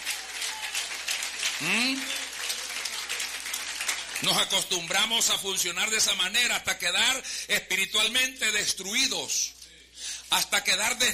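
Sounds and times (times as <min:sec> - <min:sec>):
audience applause: 0:00.0 - 0:05.3
speech: 0:01.6 - 0:02.2, 0:04.2 - 0:09.6, 0:10.3 - 0:11.1.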